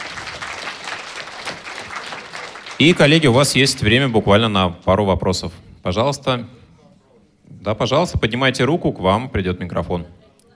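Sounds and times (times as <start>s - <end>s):
audience applause: 0.0s - 4.1s
speech: 2.8s - 6.6s, 7.6s - 10.2s.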